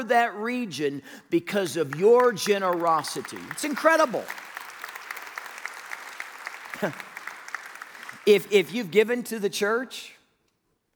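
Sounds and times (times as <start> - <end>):
speech: 0.0 - 4.5, 6.8 - 7.1, 8.2 - 10.2
audience clapping: 1.8 - 9.1.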